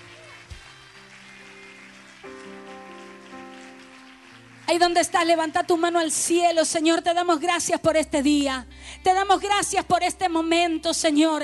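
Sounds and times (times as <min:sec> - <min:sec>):
audience clapping: 0:00.0 - 0:06.6
speech: 0:04.7 - 0:11.4.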